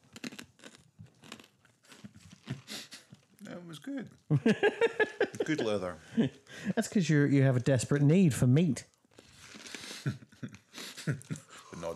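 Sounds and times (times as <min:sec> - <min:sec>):
chewing and tearing tough jackfruit: 0:00.0 - 0:03.2, 0:09.0 - 0:10.0
speech: 0:03.5 - 0:08.9
laughter: 0:04.3 - 0:06.8, 0:10.0 - 0:11.9.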